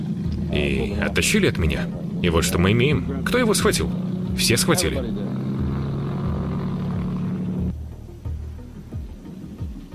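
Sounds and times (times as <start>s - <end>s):
six-seat Cessna and 20-seat Guyana Airways Twin Otter roaring: 0.0s - 7.7s
speech: 0.5s - 5.4s.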